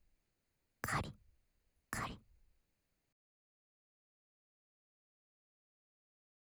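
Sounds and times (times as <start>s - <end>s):
scratching nipple stimulation sound: 0.8s - 1.1s, 2.0s - 2.2s.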